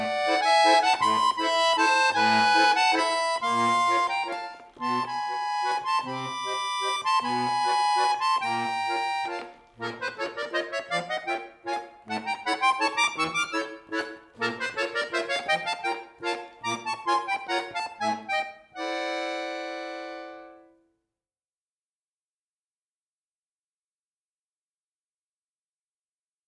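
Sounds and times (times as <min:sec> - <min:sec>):
miniature musette waltz: 0:00.0 - 0:20.8.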